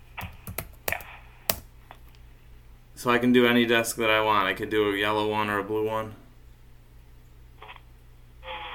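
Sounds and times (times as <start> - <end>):
keyboard key taps: 0.2 - 1.7
speech: 3.0 - 6.2.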